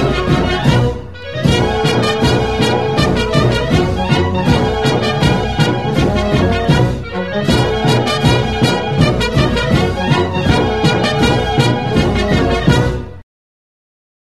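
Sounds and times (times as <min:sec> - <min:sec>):
cornet bugle playing: 0:00.0 - 0:13.2.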